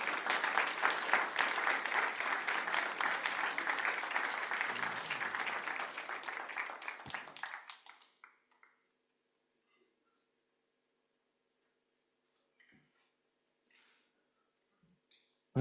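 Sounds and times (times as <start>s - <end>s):
audience applause: 0.0s - 8.9s.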